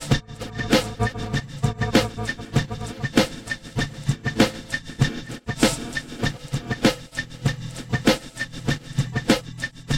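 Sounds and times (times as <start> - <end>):
drum: 0.0 - 9.9.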